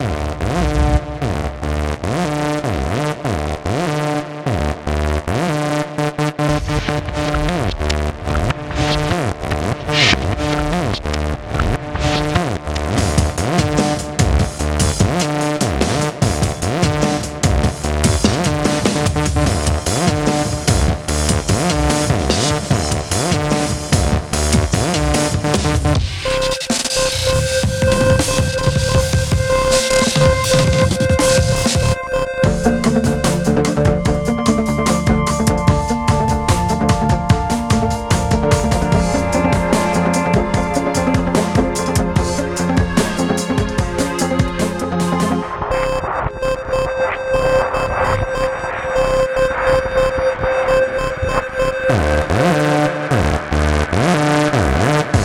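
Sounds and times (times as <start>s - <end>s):
synth rock music: 0.0s - 55.2s.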